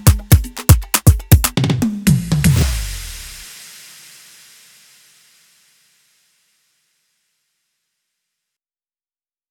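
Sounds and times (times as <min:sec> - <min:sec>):
reparto drum fills: 0:00.0 - 0:04.6.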